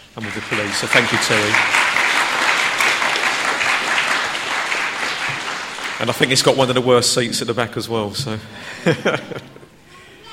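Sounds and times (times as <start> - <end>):
round of applause: 0.0 - 7.2
speech: 0.2 - 2.0, 6.0 - 9.6
laughter: 0.2 - 7.4, 8.2 - 9.8.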